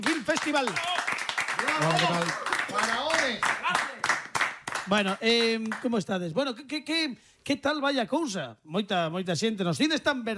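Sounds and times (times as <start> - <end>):
speech: 0.0 - 1.0, 1.6 - 3.8, 4.9 - 10.3
audience applause: 0.0 - 5.1.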